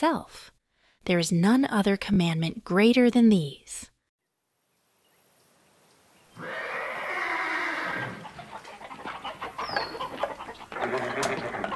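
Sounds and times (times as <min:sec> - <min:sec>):
speech: 0:00.0 - 0:03.9
spooked horses whinnying: 0:06.4 - 0:11.7
chickens in a tizzy clucking and squawking: 0:07.7 - 0:11.7.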